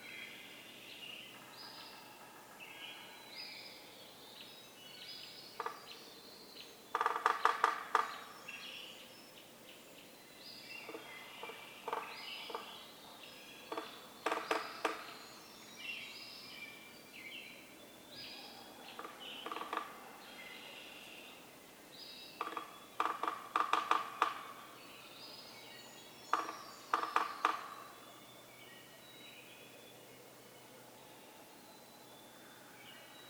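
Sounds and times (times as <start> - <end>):
birds singing: 0.0 - 33.2
Yellow-bellied Sapsucker drumming: 5.6 - 6.0, 6.9 - 8.3, 10.8 - 12.7, 13.7 - 15.2, 18.9 - 20.0, 22.4 - 24.8, 26.3 - 28.1.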